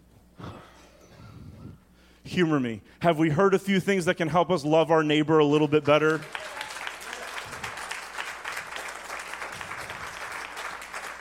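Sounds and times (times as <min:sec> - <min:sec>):
speech: 0:02.3 - 0:06.4
audience applause: 0:05.7 - 0:11.1.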